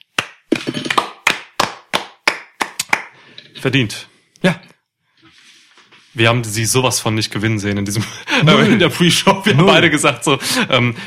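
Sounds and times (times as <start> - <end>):
applause: 0.1 - 3.2
speech: 3.6 - 4.7, 6.2 - 11.0
laughter: 8.0 - 11.0.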